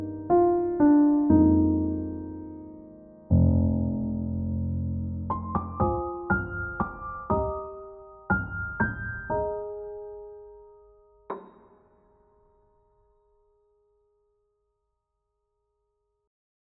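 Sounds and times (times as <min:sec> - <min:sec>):
new age music: 0:00.0 - 0:13.3.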